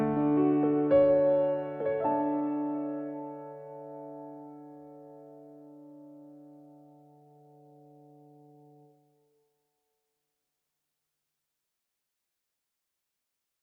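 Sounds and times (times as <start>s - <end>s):
solo piano: 0.0s - 9.0s.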